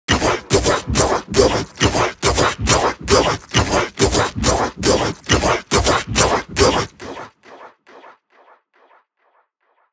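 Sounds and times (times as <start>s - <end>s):
wet shamanic voice in psytrance: 0.0s - 7.5s.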